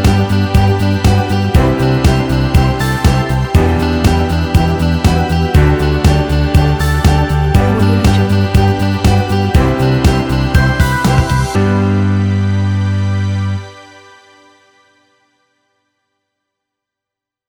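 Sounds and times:
energetic corporate pop music: 0.0 - 12.5.

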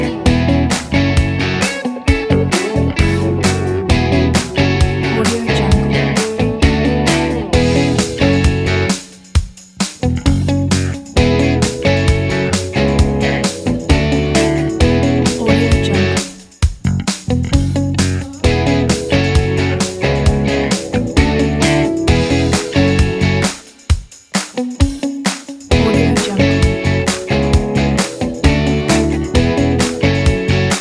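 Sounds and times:
positive funky music: 0.0 - 30.7.

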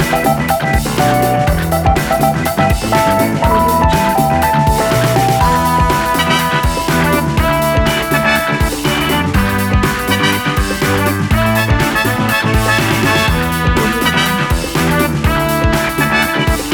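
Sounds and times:
action funk music: 0.0 - 16.7.

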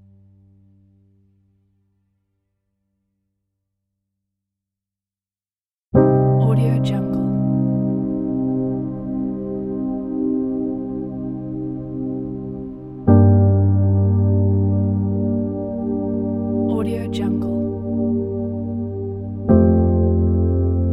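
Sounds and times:
dramatic dreamy piano: 6.0 - 20.9.

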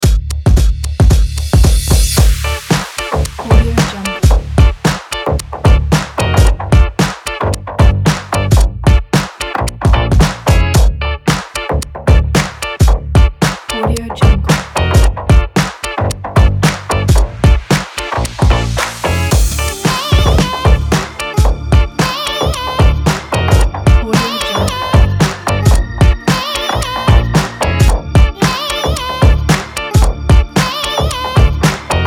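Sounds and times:
funky drum breaks: 0.0 - 32.0.

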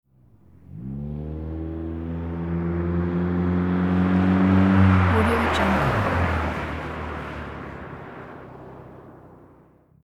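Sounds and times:
street race car approaching fast and coasting around corner: 0.1 - 9.9.

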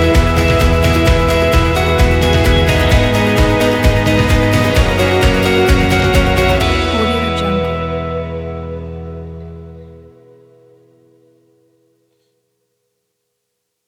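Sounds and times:
indie folk music: 0.0 - 10.6.

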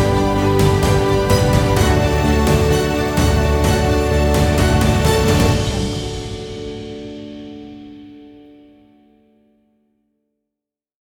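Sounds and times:
cinematic music: 0.0 - 8.6.

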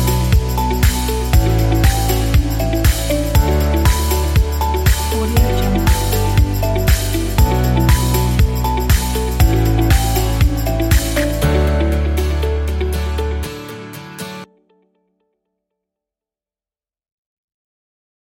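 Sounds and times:
bright motivational music: 0.0 - 14.5.

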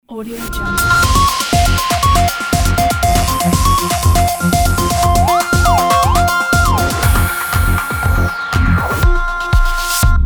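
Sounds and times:
high technology intro ident: 0.4 - 10.1.

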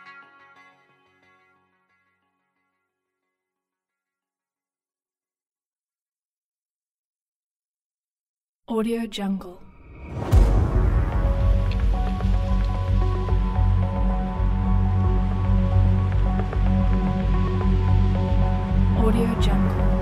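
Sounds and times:
rhythmic suspense atmosphere soundscape: 9.9 - 19.9.

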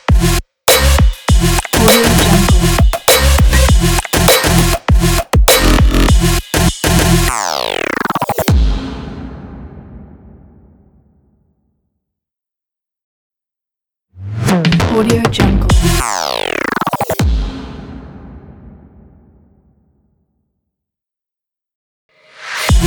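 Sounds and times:
robotic breakbeat: 0.0 - 8.8, 14.4 - 17.6, 22.7 - 22.8.

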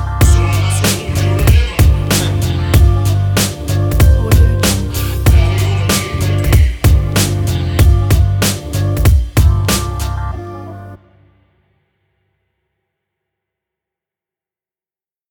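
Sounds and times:
hip hop music: 0.0 - 11.0.

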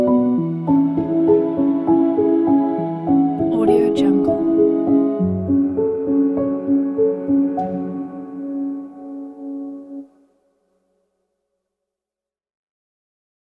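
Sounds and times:
sad piano music: 0.0 - 10.5.

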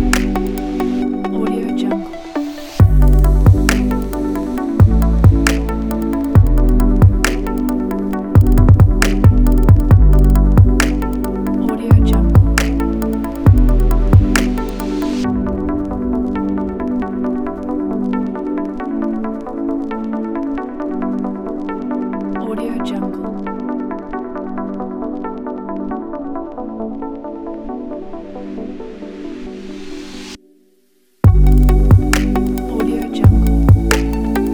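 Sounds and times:
chill trap music: 0.0 - 22.6, 31.2 - 34.5.

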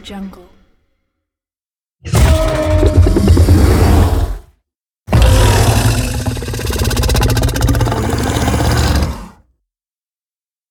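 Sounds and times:
monster: 2.1 - 4.5, 5.1 - 9.5.

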